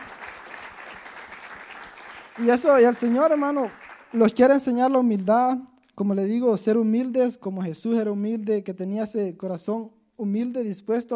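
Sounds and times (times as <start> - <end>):
audience applause: 0.0 - 4.2
speech: 2.4 - 11.1.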